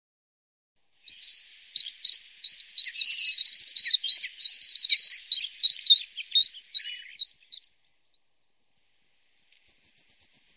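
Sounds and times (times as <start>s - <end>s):
crested tit making high thin notes and buzzy trills: 1.0s - 8.2s, 9.6s - 10.5s.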